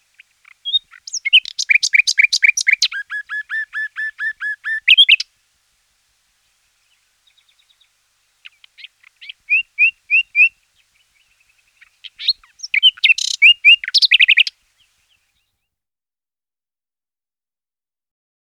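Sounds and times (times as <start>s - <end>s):
bluethroat singing: 0.0s - 5.3s, 6.8s - 15.6s.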